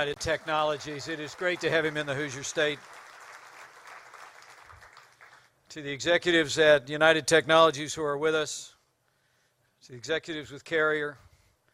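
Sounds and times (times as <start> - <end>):
speech: 0.0 - 3.0, 5.7 - 8.7, 9.8 - 11.2
audience applause: 0.0 - 5.5.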